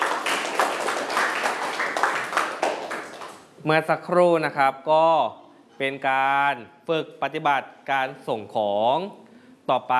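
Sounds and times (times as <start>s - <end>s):
classroom applause: 0.0s - 3.5s
speech: 3.6s - 9.9s.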